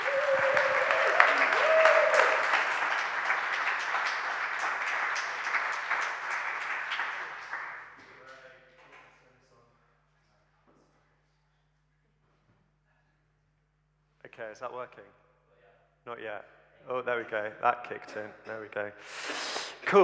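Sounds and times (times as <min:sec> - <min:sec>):
church congregation applause welcoming a preacher: 0:00.0 - 0:08.0
speech: 0:14.6 - 0:15.3, 0:16.1 - 0:20.0.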